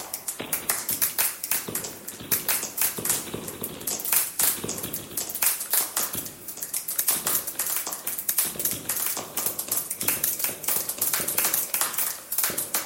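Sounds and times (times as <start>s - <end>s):
clapping: 0.0s - 12.8s.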